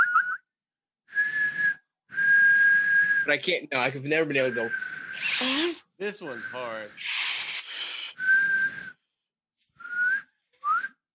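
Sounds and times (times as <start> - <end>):
person whistling: 0.0 - 0.5, 1.1 - 3.3, 4.4 - 5.7, 6.3 - 9.0, 9.8 - 11.0
speech: 3.3 - 7.2.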